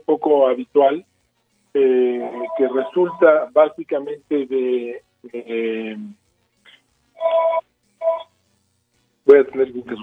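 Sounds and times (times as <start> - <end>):
speech: 0.3 - 1.1, 1.7 - 6.2, 7.2 - 8.2, 9.3 - 10.0
telephone ringing in background: 2.2 - 3.3, 7.2 - 8.3.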